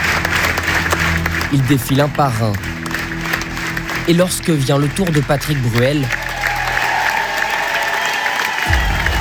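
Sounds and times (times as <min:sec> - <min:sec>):
theatre audience applauding at the curtain call: 0:00.0 - 0:09.1
speech: 0:01.5 - 0:02.8, 0:04.0 - 0:06.2
low rumble: 0:08.7 - 0:09.1.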